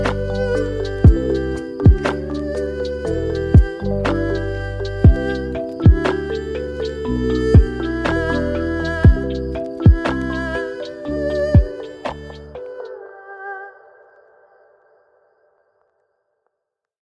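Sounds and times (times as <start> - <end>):
lofi hip hop music: 0.0 - 12.7.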